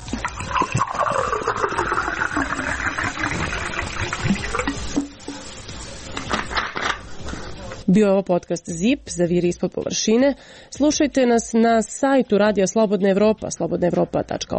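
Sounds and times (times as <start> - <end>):
bottled water pouring from a bottle into a glass: 0.0 - 5.4
speech: 7.9 - 14.5.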